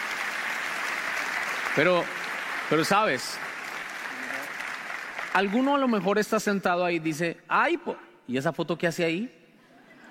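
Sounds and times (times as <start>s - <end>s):
audience applause: 0.0s - 6.4s
speech: 1.8s - 3.5s, 5.3s - 9.4s.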